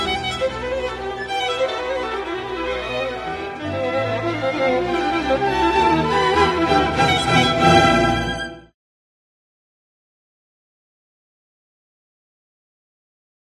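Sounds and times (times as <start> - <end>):
violin concerto with orchestra: 0.0 - 8.7.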